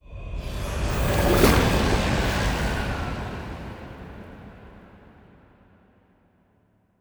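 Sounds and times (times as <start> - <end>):
titan ship moving: 0.8 - 5.3.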